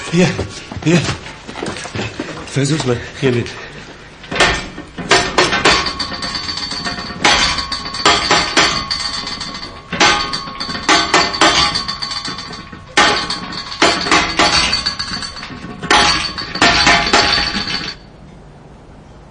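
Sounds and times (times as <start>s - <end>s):
speech: 0.2s - 1.2s, 2.6s - 3.6s
knocking signals tapping on metal: 4.3s - 18.1s.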